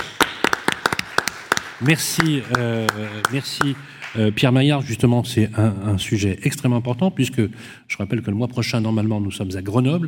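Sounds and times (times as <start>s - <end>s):
audience applause: 0.0s - 4.4s
speech: 1.8s - 10.0s.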